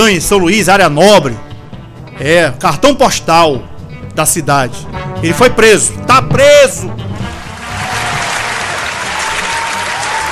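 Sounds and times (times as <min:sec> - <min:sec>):
speech: 0:00.0 - 0:01.5, 0:02.2 - 0:07.1
crowd applauding: 0:07.2 - 0:10.3.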